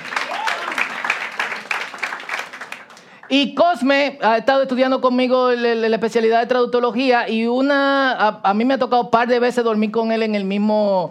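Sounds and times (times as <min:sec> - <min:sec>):
audience applauding: 0:00.0 - 0:03.4
speech: 0:03.3 - 0:11.0.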